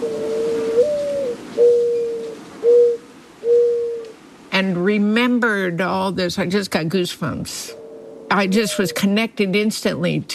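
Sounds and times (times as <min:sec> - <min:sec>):
dove cooing: 0:00.0 - 0:04.2, 0:07.7 - 0:09.2
faint hiss: 0:00.0 - 0:10.3
speech: 0:04.6 - 0:10.3.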